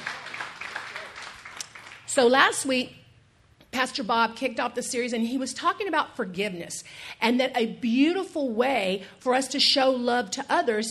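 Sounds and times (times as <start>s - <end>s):
audience clapping: 0.0s - 2.1s
speech: 2.2s - 3.0s, 3.7s - 10.9s.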